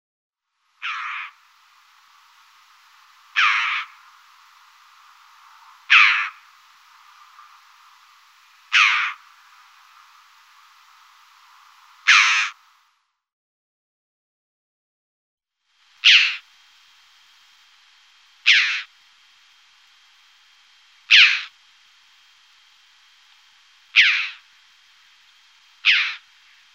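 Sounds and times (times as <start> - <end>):
red-billed chough calling with harsh chattering notes: 0.8 - 1.4, 3.2 - 10.9, 12.0 - 12.6, 16.0 - 16.4, 18.4 - 18.9, 21.1 - 21.6, 23.9 - 24.5, 25.4 - 26.7.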